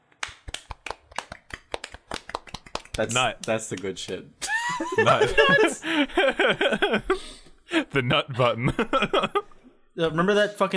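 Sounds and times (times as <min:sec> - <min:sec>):
clapping: 0:00.2 - 0:04.2
speech: 0:03.0 - 0:09.4, 0:10.0 - 0:10.7
laughter: 0:04.4 - 0:09.6.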